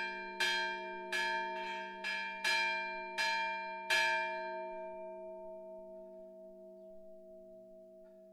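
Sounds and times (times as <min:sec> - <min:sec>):
church tower bells ringing a closing peal: 0:00.0 - 0:05.4.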